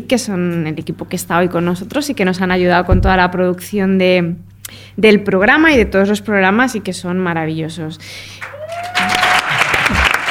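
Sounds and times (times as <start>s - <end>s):
speech: 0.1s - 9.2s
applause: 8.4s - 10.2s.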